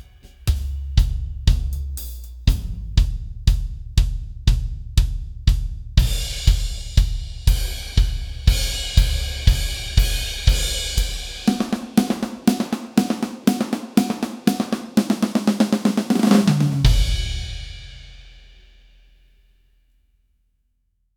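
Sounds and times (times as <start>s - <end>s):
jazz drums: 0.0s - 18.7s.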